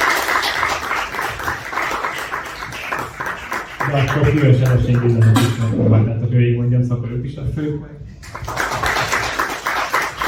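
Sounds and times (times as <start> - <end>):
audience applause: 0.0 - 5.3, 8.2 - 10.2
speech: 3.9 - 8.5.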